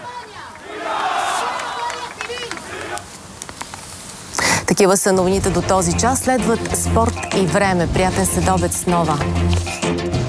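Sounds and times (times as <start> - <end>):
protest crowd chanting outside the Moroccan embassy in Madrid: 0.0 - 3.1
speech: 4.8 - 10.2.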